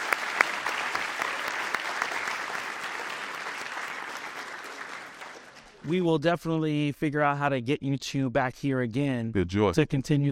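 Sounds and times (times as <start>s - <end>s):
audience applause: 0.0s - 6.0s
speech: 5.8s - 10.3s.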